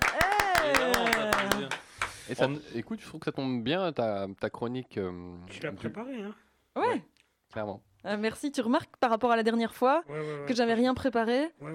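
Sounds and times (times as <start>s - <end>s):
hand claps: 0.0s - 2.2s
speech: 2.3s - 11.7s.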